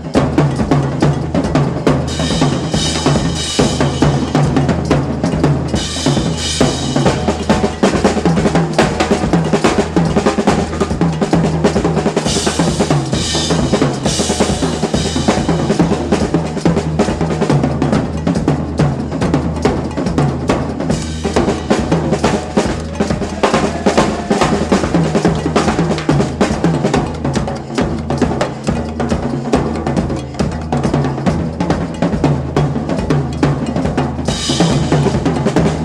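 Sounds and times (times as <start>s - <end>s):
crazy drums: 0.0s - 35.8s.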